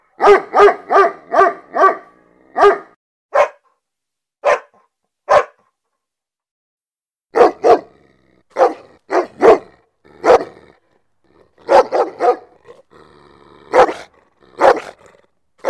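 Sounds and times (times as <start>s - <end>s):
German Shepherd barking: 0.1s - 3.8s, 4.4s - 5.7s, 7.3s - 10.6s, 11.6s - 12.7s, 13.7s - 15.6s.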